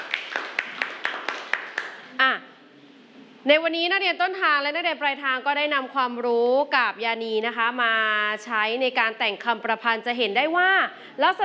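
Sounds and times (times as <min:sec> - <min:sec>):
students clapping for a group: 0:00.0 - 0:02.1
speech: 0:03.4 - 0:11.4.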